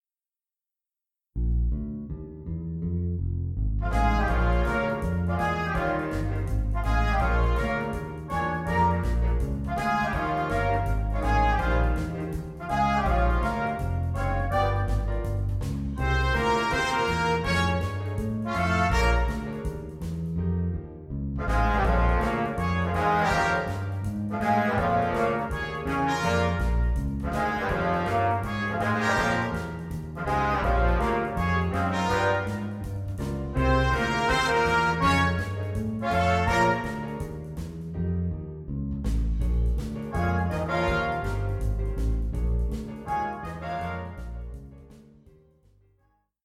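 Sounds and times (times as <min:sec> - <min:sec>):
blues for jazz ensemble: 0:01.4 - 0:45.5.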